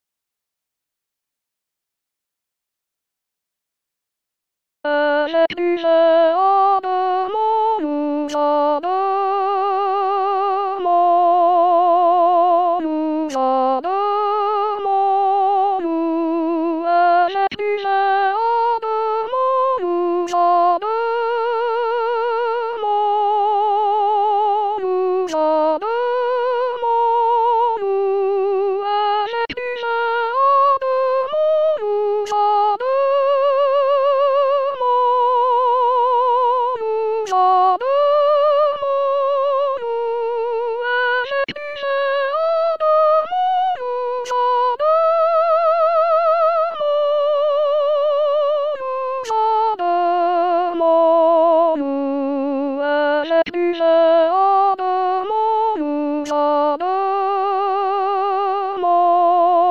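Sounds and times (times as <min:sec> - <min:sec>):
soprano singing: 0:04.9 - 0:59.7.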